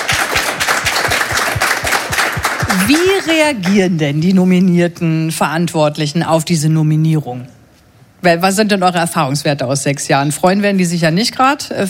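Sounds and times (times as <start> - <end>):
audience applause: 0.0 - 3.4
speech: 2.8 - 7.6, 8.2 - 11.8.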